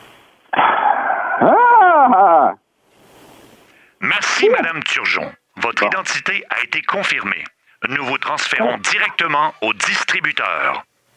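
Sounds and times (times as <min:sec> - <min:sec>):
person imitating a horse: 0:00.6 - 0:02.6, 0:04.3 - 0:06.0, 0:08.5 - 0:08.9
speech: 0:04.4 - 0:10.9.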